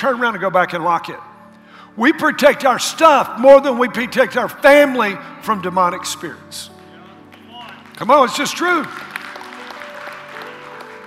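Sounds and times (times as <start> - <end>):
speech: 0.0 - 1.3, 2.0 - 6.7, 8.0 - 9.1
soft polite golf clapping from a group: 6.7 - 11.0.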